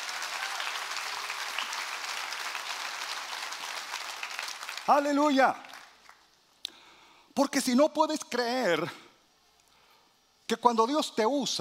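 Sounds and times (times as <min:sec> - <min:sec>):
audience applause: 0:00.0 - 0:06.2
speech: 0:04.9 - 0:05.6, 0:07.4 - 0:09.0, 0:10.5 - 0:11.6.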